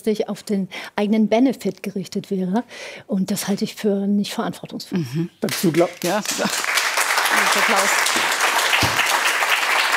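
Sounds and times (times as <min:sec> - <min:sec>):
speech: 0:00.0 - 0:06.7, 0:07.6 - 0:08.1
audience applause: 0:05.7 - 0:09.9.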